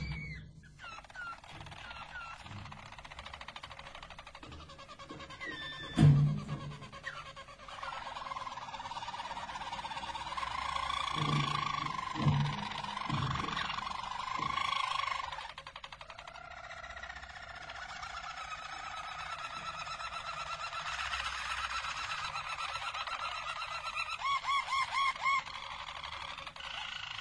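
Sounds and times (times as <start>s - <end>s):
Belgian Harz Roller canary song with rolling tours and trills: 0.0s - 27.1s.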